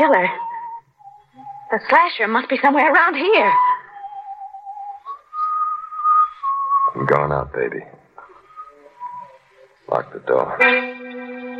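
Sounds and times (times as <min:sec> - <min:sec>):
speech: 0:00.0 - 0:00.5, 0:01.7 - 0:03.7, 0:07.0 - 0:08.0, 0:09.9 - 0:11.0
person whistling a slow tune: 0:00.0 - 0:01.9, 0:03.2 - 0:07.2, 0:08.3 - 0:09.5.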